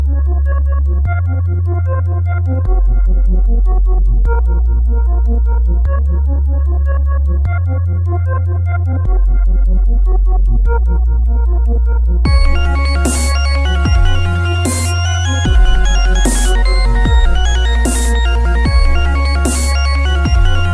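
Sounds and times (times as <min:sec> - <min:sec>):
techno anime dub music: 0:00.0 - 0:20.7.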